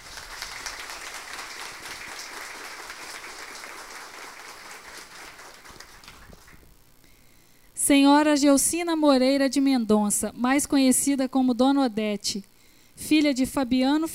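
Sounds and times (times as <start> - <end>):
audience applause: 0.0 - 6.6
speech: 7.9 - 12.5, 13.1 - 14.1.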